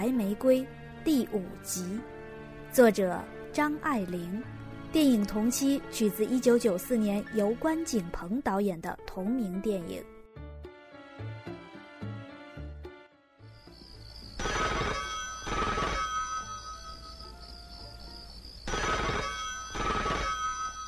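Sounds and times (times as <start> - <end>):
speech: 0.0 - 2.1, 2.7 - 10.1
telephone bell ringing: 14.4 - 17.6, 18.7 - 20.8.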